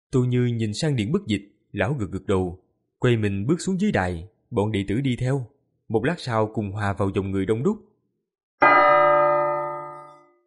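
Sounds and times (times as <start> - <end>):
speech: 0.1 - 7.9
single clear bell strike: 8.6 - 10.4.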